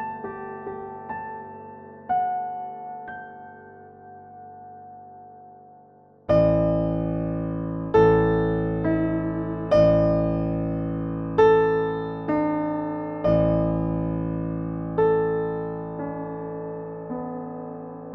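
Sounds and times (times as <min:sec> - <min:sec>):
piano in 11-tone equal temperament: 0:00.0 - 0:18.1.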